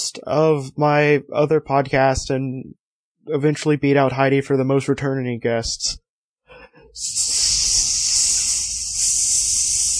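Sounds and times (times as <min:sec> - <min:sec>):
speech: 0:00.1 - 0:06.0, 0:06.8 - 0:07.7
person hissing: 0:06.6 - 0:09.9.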